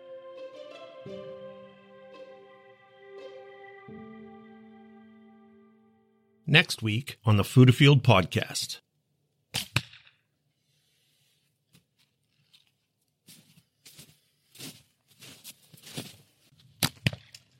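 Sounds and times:
speech: 0:01.0 - 0:01.4, 0:06.5 - 0:08.8
arrow shot from a bow hitting the target: 0:09.6 - 0:10.2.

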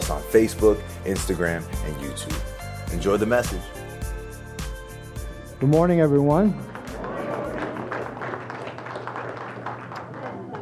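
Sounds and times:
speech: 0:00.1 - 0:03.8, 0:05.6 - 0:06.7
audience applause: 0:06.7 - 0:10.6.

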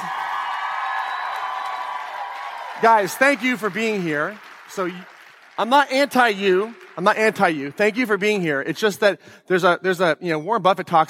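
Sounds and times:
audience applause: 0:00.0 - 0:08.6
speech: 0:02.8 - 0:11.0.

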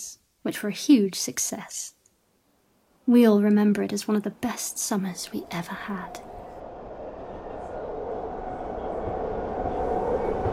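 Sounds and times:
speech: 0:00.4 - 0:02.0, 0:03.1 - 0:06.3
train charging into a tunnel toward Liverpool: 0:05.0 - 0:10.5.

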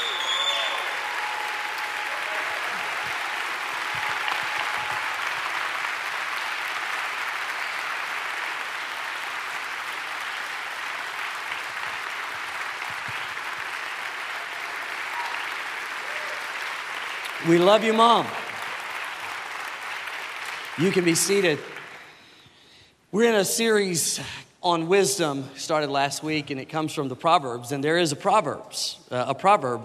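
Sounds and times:
church congregation applauding and cheering for mothers: 0:00.0 - 0:22.8
speech: 0:17.4 - 0:18.4, 0:20.8 - 0:21.8, 0:23.1 - 0:29.8.

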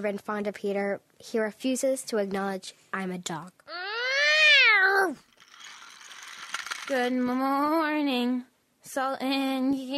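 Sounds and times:
speech: 0:00.0 - 0:03.8, 0:05.0 - 0:05.2, 0:06.9 - 0:09.9
cat meowing: 0:03.7 - 0:05.0.

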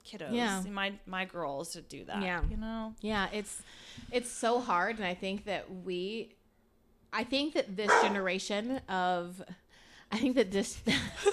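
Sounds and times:
speech: 0:00.1 - 0:06.4, 0:07.1 - 0:11.3
dog barking: 0:07.9 - 0:08.2.

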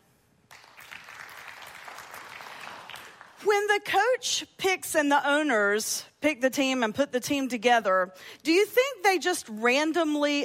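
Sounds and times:
audience clapping: 0:00.5 - 0:03.4
speech: 0:03.4 - 0:10.4.

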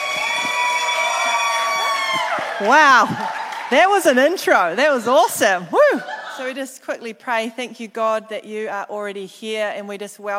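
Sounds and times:
crowd cheering and whooping: 0:00.0 - 0:04.1, 0:05.7 - 0:06.4
speech: 0:02.6 - 0:10.3.

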